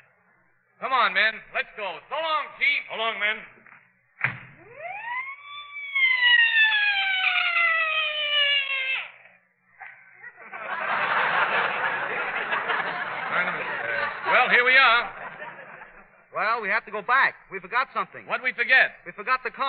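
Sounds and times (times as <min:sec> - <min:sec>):
speech: 0:00.8 - 0:03.5, 0:16.9 - 0:19.6
police car siren wail: 0:04.6 - 0:09.4
laughter: 0:09.8 - 0:16.3.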